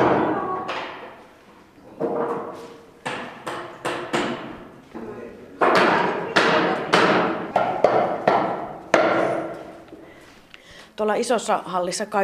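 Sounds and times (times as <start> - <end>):
hammering knocks from nearby workshop: 2.0 - 4.7, 5.6 - 9.7
speech: 11.0 - 12.2.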